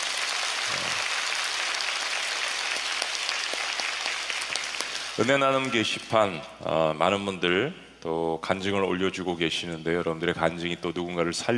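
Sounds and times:
audience applause: 0.0s - 5.7s
speech: 5.2s - 11.5s.

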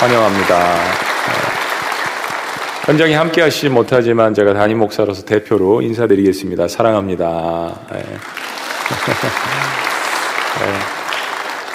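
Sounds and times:
speech: 0.0s - 1.4s, 2.9s - 9.9s, 10.6s - 11.0s
audience applause: 0.0s - 3.8s, 8.0s - 11.7s
laughter: 1.2s - 2.1s, 8.7s - 10.9s.

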